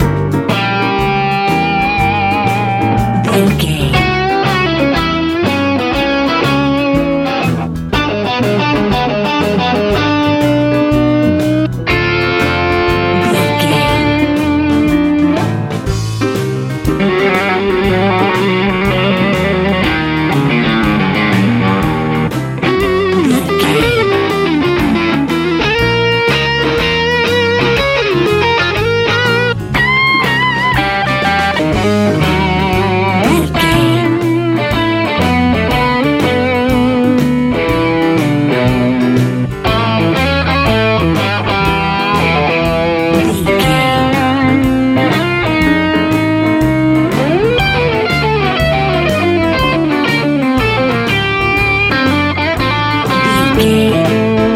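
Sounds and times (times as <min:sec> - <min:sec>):
blues music: 0:00.0 - 0:54.5.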